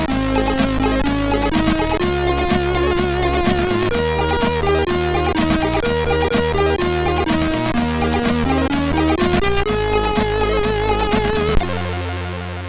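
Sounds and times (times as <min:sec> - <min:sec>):
tango music on MOS6581R3 sound chip: 0:00.0 - 0:12.6.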